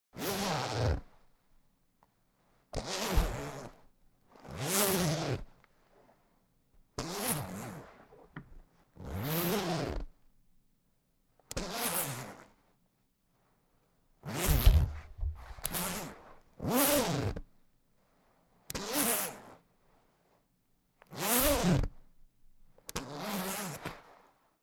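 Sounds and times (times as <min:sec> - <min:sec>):
zipper: 0:00.2 - 0:01.2, 0:02.8 - 0:06.1, 0:07.0 - 0:08.3, 0:09.0 - 0:10.2, 0:11.6 - 0:12.6, 0:14.2 - 0:17.5, 0:18.2 - 0:20.4, 0:21.0 - 0:22.1, 0:22.7 - 0:24.5.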